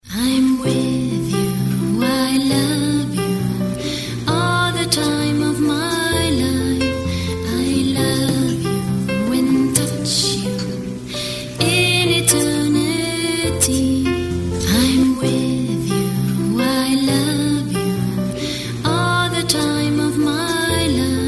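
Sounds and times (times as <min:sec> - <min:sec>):
love song ringtone: 0:00.2 - 0:21.2.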